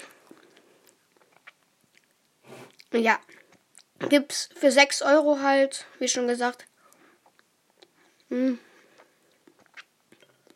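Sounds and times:
wet chewing of mixed ice cream: 0.2s - 4.0s, 9.0s - 10.5s
speech: 2.9s - 3.4s, 4.0s - 6.7s, 8.3s - 8.7s.

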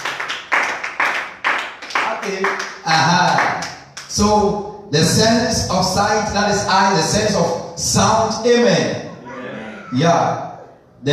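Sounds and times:
audience clapping hands: 0.0s - 4.2s
speech: 2.2s - 9.0s, 9.9s - 10.4s, 11.0s - 11.1s.

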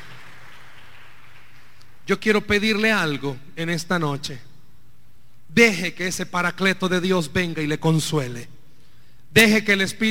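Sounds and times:
audience applauding: 0.0s - 1.8s
speech: 2.1s - 4.5s, 5.5s - 8.6s, 9.3s - 10.0s.

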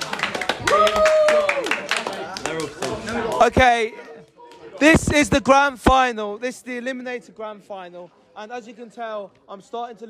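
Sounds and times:
crowd clapping: 0.0s - 4.8s
speech: 3.4s - 4.0s, 4.8s - 10.0s.

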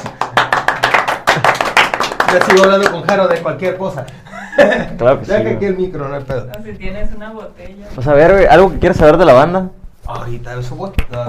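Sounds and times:
small group clapping: 0.0s - 4.3s
speech: 2.3s - 11.2s
laughter: 4.2s - 5.1s.

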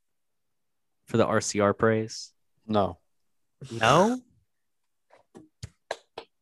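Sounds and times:
speech: 1.1s - 3.0s, 3.6s - 4.3s
hands clapping: 5.4s - 6.4s.

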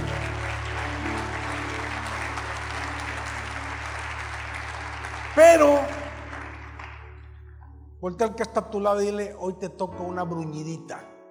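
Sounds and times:
audience applause: 0.0s - 7.3s
speech: 5.4s - 6.0s, 8.0s - 11.1s.

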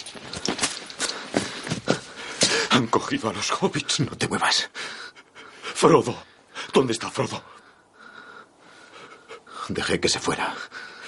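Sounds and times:
running footsteps: 0.0s - 2.7s
speech: 2.8s - 5.1s, 5.8s - 7.6s, 9.7s - 10.8s.

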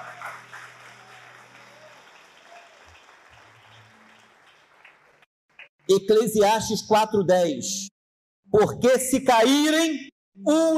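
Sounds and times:
crowd applause: 0.0s - 5.7s
speech: 5.9s - 7.9s, 8.5s - 10.7s.

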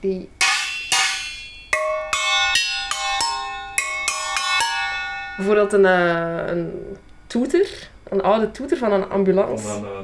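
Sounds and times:
speech: 0.0s - 0.4s, 5.4s - 10.0s
metal pot lids being struck: 0.4s - 6.1s.

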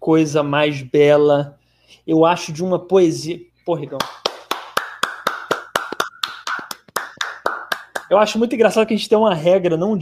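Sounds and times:
speech: 0.0s - 4.2s, 8.1s - 10.0s
hand clapping: 3.9s - 8.3s.

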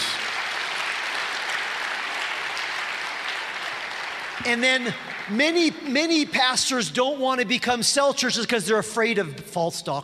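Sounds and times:
audience applauding: 0.0s - 5.8s
speech: 4.4s - 10.0s.

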